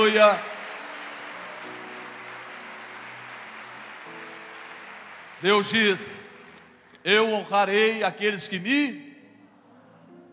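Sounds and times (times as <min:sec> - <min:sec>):
speech: 0:00.0 - 0:00.5, 0:05.4 - 0:06.2, 0:07.0 - 0:09.1
large audience applauding: 0:00.0 - 0:07.0.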